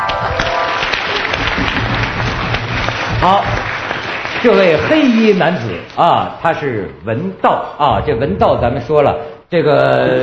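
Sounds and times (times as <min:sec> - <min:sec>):
audience applause: 0:00.0 - 0:06.0
speech: 0:03.2 - 0:03.6, 0:04.4 - 0:10.2.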